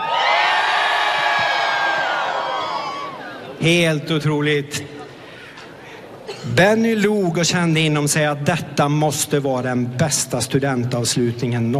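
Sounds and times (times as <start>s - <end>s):
large crowd cheering and whooping outdoors: 0.0s - 3.6s
speech: 3.6s - 5.0s, 6.4s - 11.7s.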